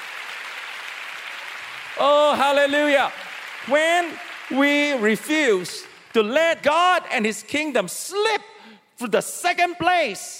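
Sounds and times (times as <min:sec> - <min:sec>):
audience clapping: 0:00.0 - 0:07.5
speech: 0:02.0 - 0:10.3.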